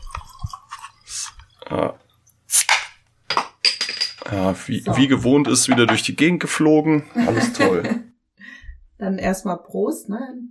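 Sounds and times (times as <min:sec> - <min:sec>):
beer pouring and fizzing: 0:00.0 - 0:01.8
speech: 0:04.3 - 0:08.1, 0:09.0 - 0:10.4
laughter: 0:07.1 - 0:08.1.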